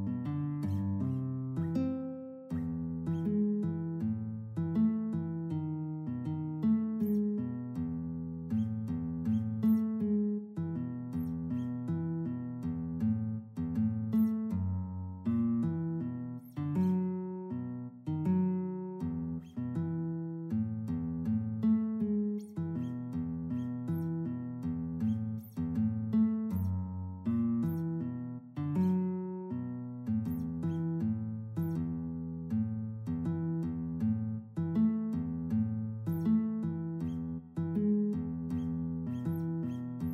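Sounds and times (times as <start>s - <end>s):
guitar: 0.0s - 40.1s.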